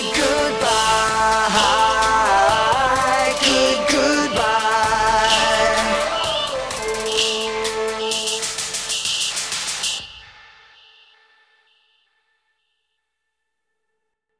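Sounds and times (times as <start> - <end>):
a cappella singing: 0.0 - 9.2.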